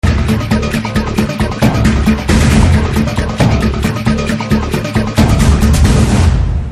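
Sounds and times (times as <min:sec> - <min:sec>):
trailer background tone: 0:00.0 - 0:06.7.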